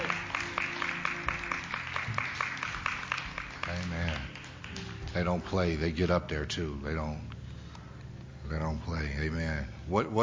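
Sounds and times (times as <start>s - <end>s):
audience clapping hands: 0.0s - 5.6s
speech: 5.2s - 7.3s, 8.5s - 10.2s.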